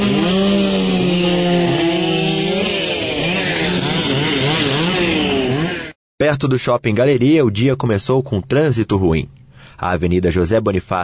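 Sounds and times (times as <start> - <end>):
chainsaw cutting fallen trees: 0.0 - 6.0
speech: 6.4 - 11.0.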